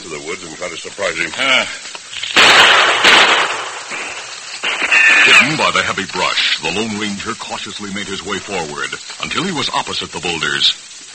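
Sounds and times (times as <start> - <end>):
speech: 0.4 - 3.5, 5.3 - 11.1
gunshots fired in a radio drama: 2.2 - 5.9.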